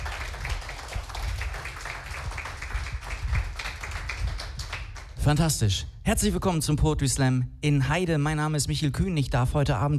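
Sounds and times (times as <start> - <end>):
audience clapping at a poetry slam in Heide: 0.0 - 5.2
speech: 5.2 - 9.9.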